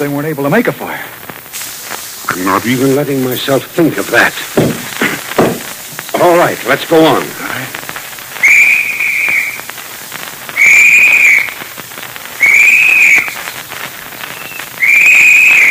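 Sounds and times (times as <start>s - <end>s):
speech: 0.0s - 1.2s, 2.4s - 4.9s, 6.2s - 7.7s
crackling hiss: 0.0s - 15.7s
shrill whistle blasts as a search party's signal: 8.3s - 9.7s, 10.4s - 11.7s, 12.3s - 13.6s, 14.2s - 15.7s.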